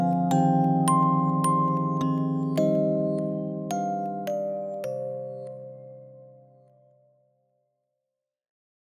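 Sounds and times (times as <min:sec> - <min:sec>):
music box playing: 0:00.0 - 0:06.2.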